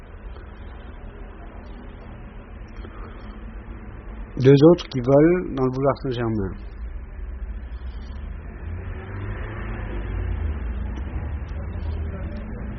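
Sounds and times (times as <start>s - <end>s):
cars coming from rue du Fou: 0.0s - 12.7s
speech: 4.4s - 6.7s.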